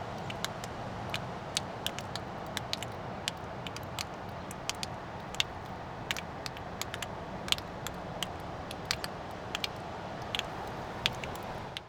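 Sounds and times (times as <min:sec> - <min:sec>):
water drops in Australia: 0:00.1 - 0:11.8.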